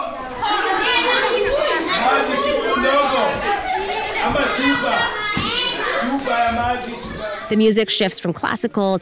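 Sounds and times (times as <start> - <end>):
crowd of children chattering and shrieking: 0.0 - 8.1
children giggling: 0.4 - 7.5
speech: 7.5 - 9.0.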